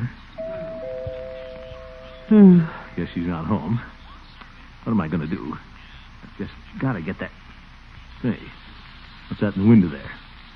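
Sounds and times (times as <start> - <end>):
faint hiss: 0.0 - 10.5
doorbell ringing with steady mid-pitched buzzing tone: 0.4 - 3.4
speech: 2.3 - 3.9, 4.9 - 5.7, 6.4 - 7.4, 8.2 - 8.6, 9.3 - 10.2.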